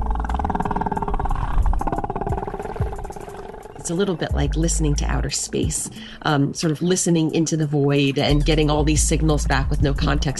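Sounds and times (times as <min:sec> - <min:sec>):
whale calls: 0:00.0 - 0:06.2
speech: 0:03.9 - 0:10.3.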